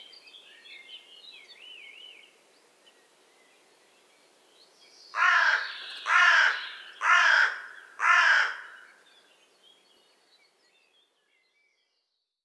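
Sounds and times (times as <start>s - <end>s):
Carrion crow Corvus corone soft low croaks: 5.2s - 9.0s.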